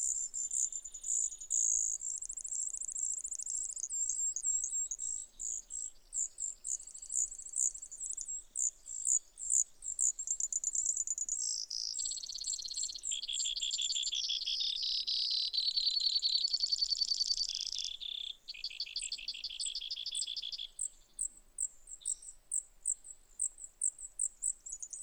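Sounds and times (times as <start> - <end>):
Brewer's Sparrow singing: 0.0 - 25.0.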